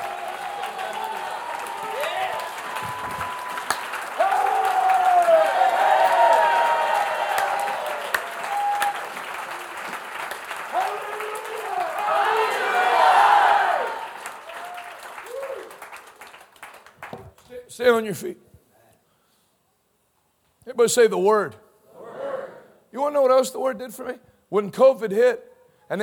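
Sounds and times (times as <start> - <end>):
cheers and whoops: 0.0 - 9.2, 10.7 - 15.8
crowd clapping: 0.0 - 17.6
speech: 17.8 - 18.4, 20.8 - 21.6, 23.1 - 26.0.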